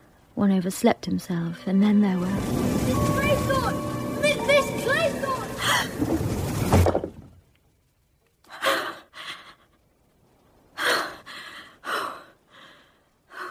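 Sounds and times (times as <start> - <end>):
speech: 0.4 - 4.0
sea waves: 2.0 - 7.0.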